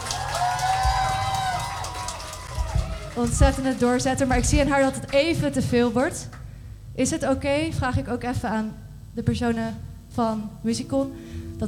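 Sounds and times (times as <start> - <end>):
scattered whoops: 0.0 - 3.6
crowd applauding and cheering: 0.0 - 4.1
speech: 3.2 - 6.4, 7.0 - 11.6.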